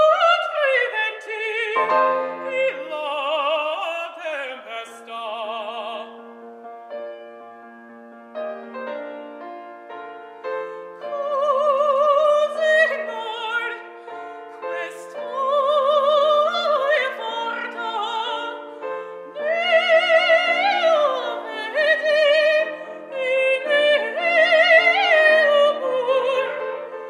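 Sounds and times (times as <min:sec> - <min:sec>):
woman singing Italian opera: 0:00.0 - 0:06.1, 0:10.6 - 0:27.0.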